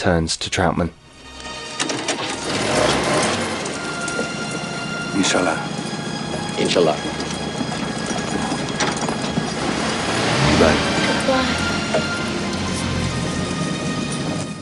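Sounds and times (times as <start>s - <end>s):
speech: 0.0s - 1.0s, 5.2s - 5.7s, 6.6s - 7.3s, 10.6s - 12.1s
jeep starting and driving through a battlefield: 1.7s - 14.6s.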